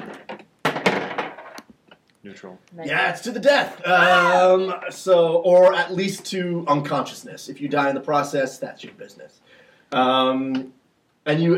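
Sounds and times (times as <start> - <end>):
dice rolling on table: 0.0 - 1.7
speech: 2.2 - 11.5.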